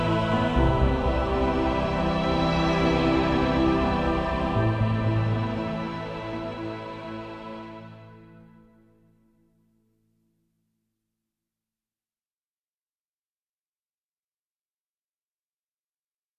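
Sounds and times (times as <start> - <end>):
ambient music: 0.0 - 9.6.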